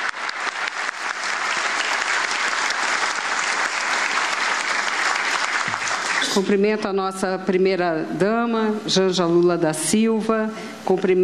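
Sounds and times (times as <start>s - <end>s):
audience applause: 0.0s - 6.5s
speech: 6.4s - 11.2s.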